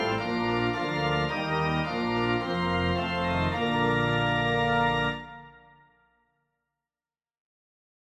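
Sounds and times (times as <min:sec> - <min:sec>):
organ: 0:00.0 - 0:06.0.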